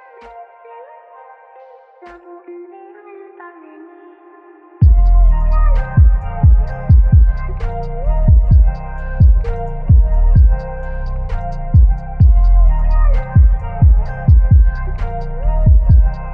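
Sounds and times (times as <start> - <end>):
anime phonk music: 4.8 - 16.3.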